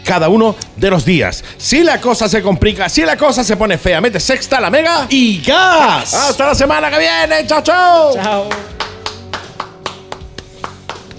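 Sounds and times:
speech: 0.0 - 8.9
one person clapping alone: 8.2 - 11.1.

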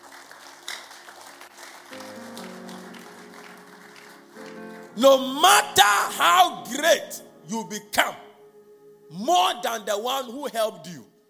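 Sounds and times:
audience clapping: 0.0 - 5.6
speech: 5.0 - 8.2, 9.1 - 11.1.

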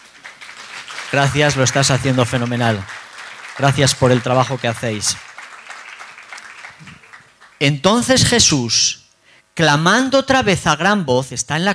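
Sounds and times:
audience applause: 0.0 - 7.6
speech: 1.1 - 3.0, 3.6 - 5.3, 7.6 - 9.0, 9.6 - 11.7.

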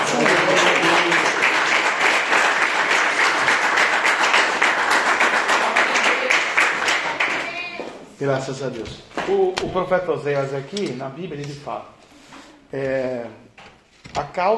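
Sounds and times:
audience clapping: 0.0 - 7.9
speech: 8.2 - 12.0, 12.7 - 13.5, 14.1 - 14.5.

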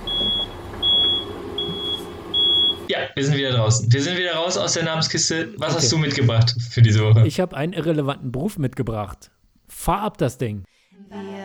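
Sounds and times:
voice imitating a vehicle's reversing beep: 0.0 - 2.9
laughter: 2.9 - 8.1
speech: 3.0 - 11.4.

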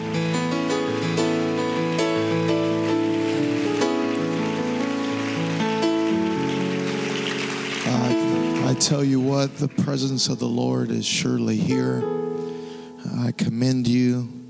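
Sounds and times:
crowd clapping hands: 0.0 - 11.4
speech: 8.8 - 12.2, 13.2 - 14.4.

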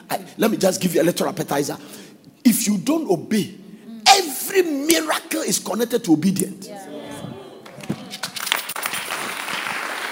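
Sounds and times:
speech: 0.4 - 3.6, 4.2 - 6.9
audience clapping: 7.6 - 10.1.

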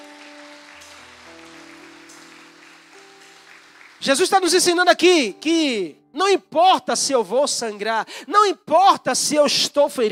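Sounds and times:
audience applause: 0.0 - 5.0
speech: 4.0 - 10.0.

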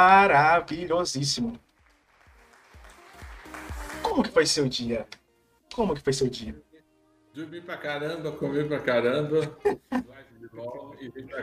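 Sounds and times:
speech: 0.0 - 1.7, 4.2 - 6.7, 7.4 - 11.4
applause: 1.6 - 4.4
laughter: 9.4 - 10.2.

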